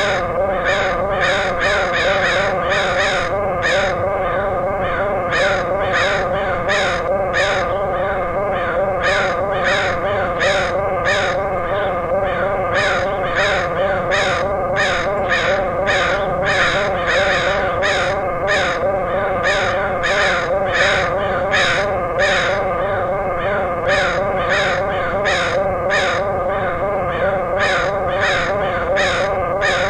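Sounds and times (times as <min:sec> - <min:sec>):
crows cawing: 0:00.0 - 0:29.8
low drone: 0:00.0 - 0:29.8.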